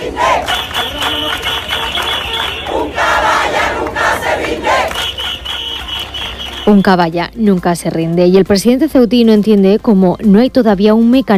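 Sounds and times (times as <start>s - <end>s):
crowd chanting slogans in the street: 0.0s - 5.5s
speech: 6.7s - 11.3s.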